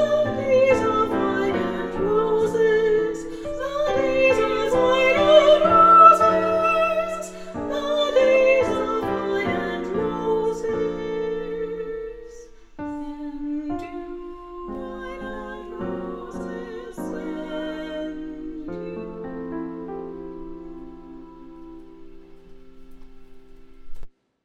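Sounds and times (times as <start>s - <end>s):
soprano singing singalongs: 0.0s - 24.0s.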